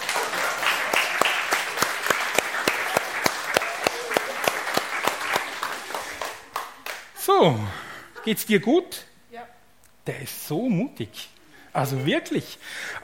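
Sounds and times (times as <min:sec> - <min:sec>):
audience applause: 0:00.0 - 0:07.2
sharp evenly spaced claps: 0:00.0 - 0:07.2
speech: 0:07.4 - 0:09.1, 0:10.1 - 0:13.0.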